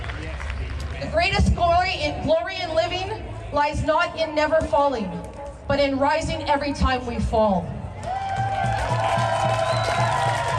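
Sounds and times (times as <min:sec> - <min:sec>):
speech: 0:01.0 - 0:07.8
crowd cheering: 0:07.9 - 0:10.5.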